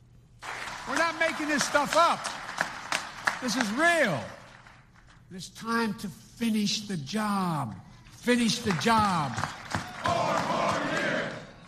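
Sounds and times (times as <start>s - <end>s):
crowd cheering at rally: 0.4s - 4.9s, 8.6s - 11.6s
speech: 1.1s - 2.4s, 3.4s - 4.4s, 5.3s - 9.6s.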